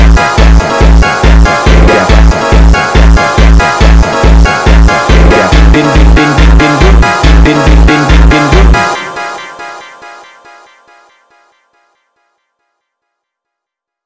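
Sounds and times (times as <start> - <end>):
funk music: 0.0 - 10.4.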